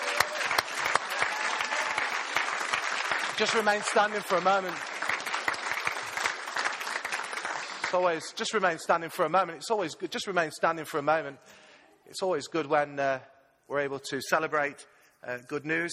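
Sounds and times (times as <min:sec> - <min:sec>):
audience applause: 0:00.0 - 0:08.2
speech: 0:03.4 - 0:04.9, 0:07.9 - 0:11.5, 0:12.1 - 0:15.9.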